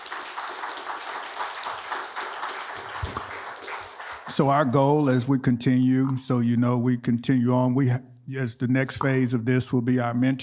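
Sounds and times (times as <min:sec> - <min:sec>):
audience applause: 0:00.0 - 0:04.6
speech: 0:04.4 - 0:10.4.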